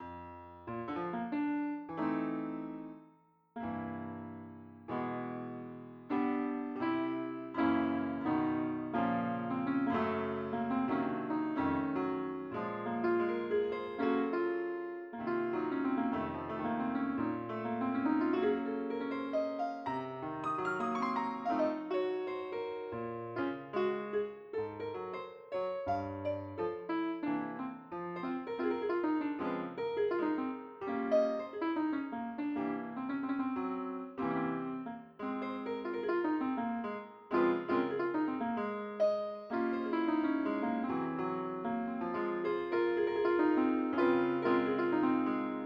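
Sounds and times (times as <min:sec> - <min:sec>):
piano: 0:00.0 - 0:45.6.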